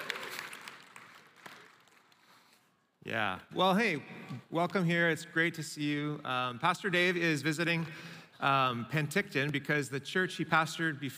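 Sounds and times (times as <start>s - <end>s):
audience at a church gathering applauding: 0.0s - 2.6s
speech: 3.1s - 11.1s.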